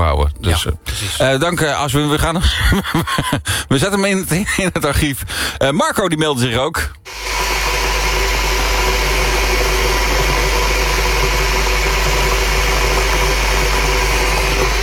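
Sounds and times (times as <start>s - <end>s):
speech: 0.1s - 7.4s
laughter: 2.1s - 3.9s
electric kettle boiling water: 7.1s - 14.8s.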